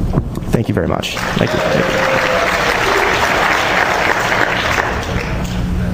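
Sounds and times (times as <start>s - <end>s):
speech: 0.1s - 2.2s
audience applause: 1.1s - 5.8s.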